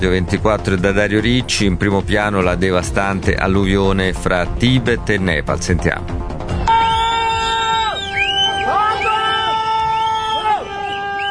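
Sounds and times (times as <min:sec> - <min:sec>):
speech: 0:00.0 - 0:06.3
villagers screaming in panic: 0:06.6 - 0:11.2
villagers whistling in panic: 0:06.7 - 0:11.2.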